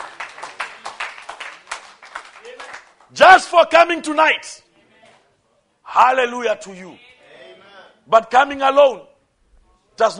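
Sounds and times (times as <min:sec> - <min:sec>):
audience clapping: 0:00.0 - 0:03.2
speech: 0:03.1 - 0:04.6, 0:06.0 - 0:07.0, 0:08.1 - 0:09.1, 0:10.0 - 0:10.1.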